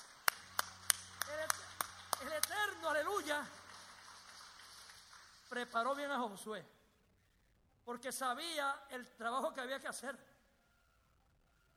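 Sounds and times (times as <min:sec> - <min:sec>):
audience claps in unison: 0:00.0 - 0:06.2
speech: 0:02.9 - 0:03.6, 0:05.5 - 0:06.8, 0:07.9 - 0:10.3.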